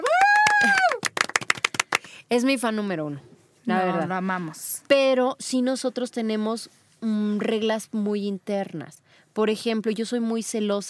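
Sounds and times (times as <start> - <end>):
person whooping: 0.0 - 1.1
audience clapping: 0.0 - 2.2
speech: 0.6 - 0.8, 2.3 - 10.8.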